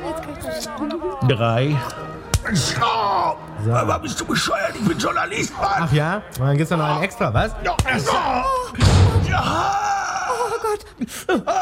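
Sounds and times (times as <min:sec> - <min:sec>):
speech: 0:00.6 - 0:09.9, 0:10.7 - 0:11.6
pained groan: 0:07.9 - 0:11.6
door slamming onto a foot: 0:08.8 - 0:09.6.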